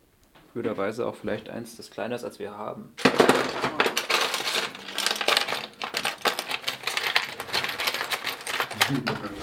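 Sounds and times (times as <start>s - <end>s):
speech: 0.5s - 3.9s, 8.9s - 9.4s
rummaging through a tool case for milling bits: 3.0s - 9.4s.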